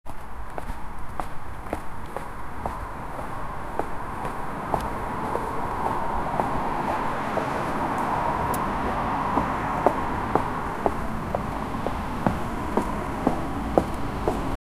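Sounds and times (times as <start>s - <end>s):
evening city ambience: 0.1s - 14.6s.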